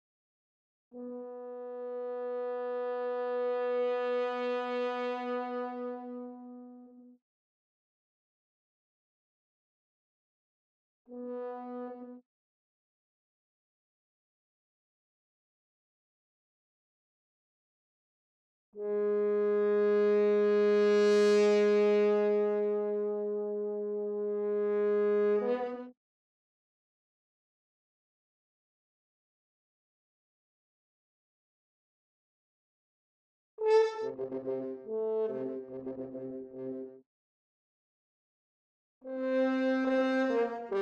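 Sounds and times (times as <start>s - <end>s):
horn: 0.9s - 7.2s, 11.1s - 12.2s, 18.8s - 26.0s, 33.6s - 37.0s, 39.0s - 40.8s.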